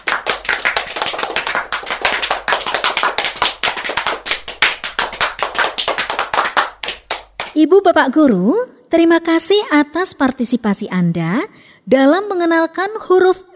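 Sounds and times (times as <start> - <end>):
applause, hands clapping: 0.0 - 7.6
speech: 7.6 - 13.5.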